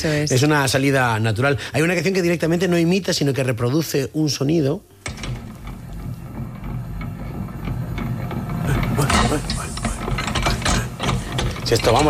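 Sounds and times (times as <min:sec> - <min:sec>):
speech: 0:00.0 - 0:05.2, 0:11.7 - 0:12.0
mixer with rotating arms churning: 0:05.4 - 0:12.0.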